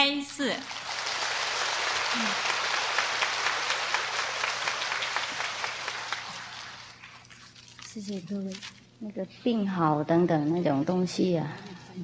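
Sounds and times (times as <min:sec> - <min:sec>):
audience applause: 0:00.7 - 0:07.0
speech: 0:08.0 - 0:12.0.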